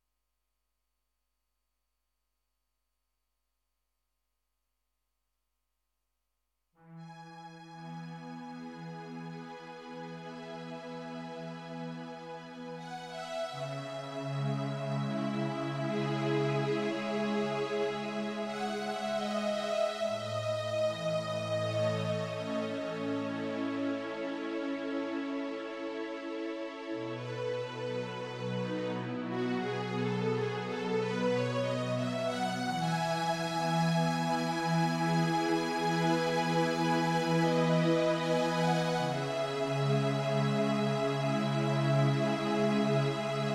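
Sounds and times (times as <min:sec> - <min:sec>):
strings: 0:07.0 - 0:43.5.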